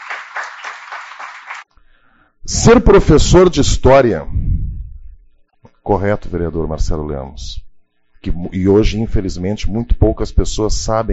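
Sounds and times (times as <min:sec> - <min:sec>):
clapping at a city council session: 0:00.0 - 0:01.7
speech: 0:02.5 - 0:04.4, 0:05.9 - 0:07.6, 0:08.2 - 0:11.1.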